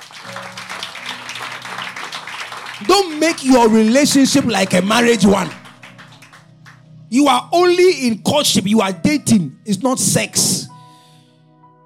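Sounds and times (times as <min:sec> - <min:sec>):
audience clapping: 0:00.0 - 0:06.9
speech: 0:02.8 - 0:05.6, 0:07.1 - 0:10.7.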